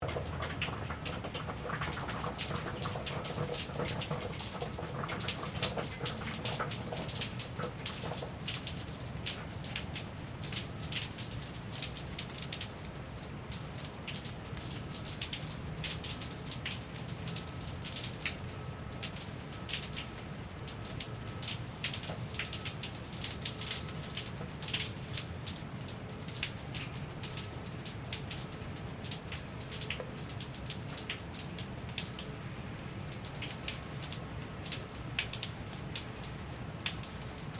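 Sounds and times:
rainwater dripping after rain: 0.0s - 37.5s.

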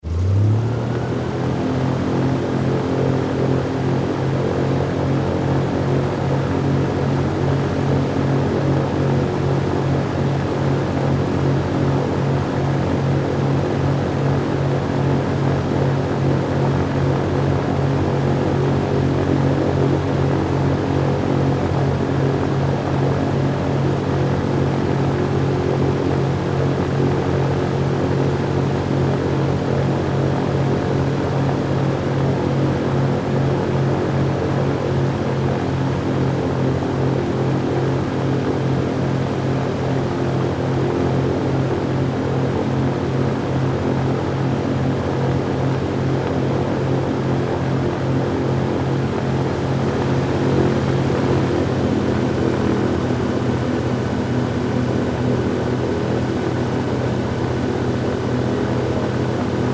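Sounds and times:
airboat driving recorded on board: 0.0s - 59.7s.

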